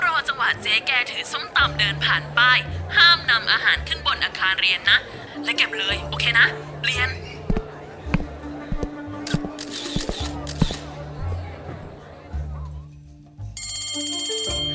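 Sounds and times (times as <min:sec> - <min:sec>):
speech: 0:00.4 - 0:07.2
knocks and shuffling bustle: 0:07.4 - 0:10.2
school bell ringing for class: 0:13.6 - 0:14.7.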